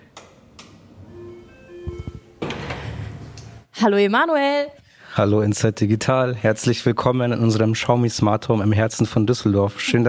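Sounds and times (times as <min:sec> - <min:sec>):
doorbell chime: 0:01.1 - 0:02.4
speech: 0:03.8 - 0:10.0.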